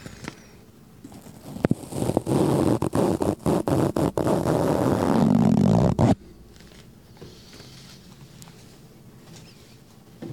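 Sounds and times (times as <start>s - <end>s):
balloon rubber squeaking and creaking: 1.0s - 6.2s
balloon being blown up: 1.1s - 6.2s.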